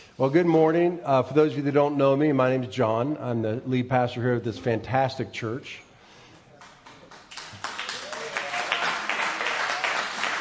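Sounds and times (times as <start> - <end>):
speech: 0.2 - 5.9
audience clapping: 6.4 - 10.3.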